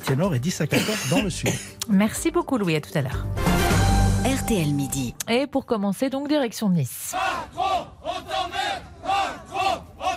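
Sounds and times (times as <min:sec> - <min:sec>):
speech: 0:00.1 - 0:03.7, 0:04.3 - 0:08.6
protesters shouting at a demonstration: 0:07.1 - 0:10.1.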